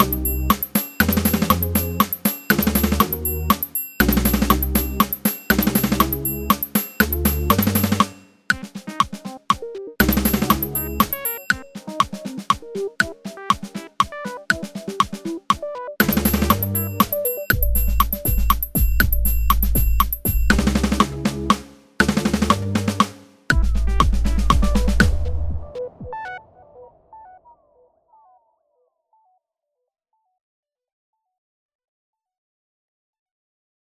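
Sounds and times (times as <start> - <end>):
click track: 0.0 - 21.1
synth snare drum: 0.0 - 25.6.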